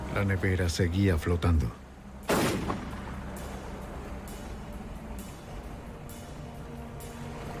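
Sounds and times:
speech: 0.2 - 1.8
gunshots fired at a floating cooler: 2.3 - 2.8.

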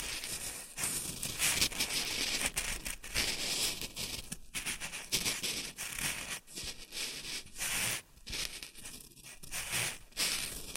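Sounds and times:
shredded tissue and packing peanuts rustling and crinkling: 0.0 - 10.7.

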